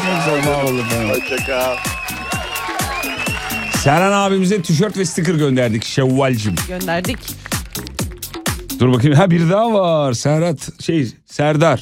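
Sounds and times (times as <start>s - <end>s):
applause: 0.0s - 8.1s
speech: 0.2s - 2.2s, 3.8s - 7.5s, 8.8s - 11.8s.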